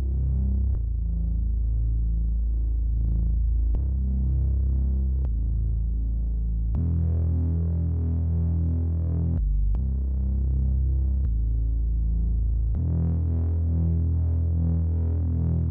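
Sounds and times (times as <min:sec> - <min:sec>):
bass loop in E minor at 80 BPM: 0:00.0 - 0:15.6.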